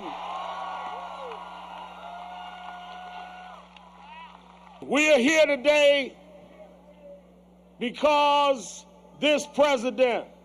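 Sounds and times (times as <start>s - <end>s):
rally crowd applause and cheering: 0.0s - 4.9s
speech: 4.8s - 6.2s, 7.8s - 10.3s.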